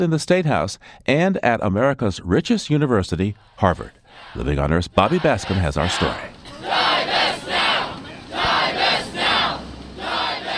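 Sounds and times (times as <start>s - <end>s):
speech: 0.0s - 6.4s
protesters chanting in front of State House: 4.0s - 10.5s.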